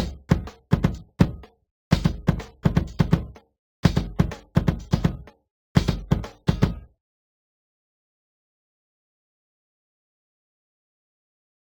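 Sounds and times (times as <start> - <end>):
bass drum: 0.0 - 6.9.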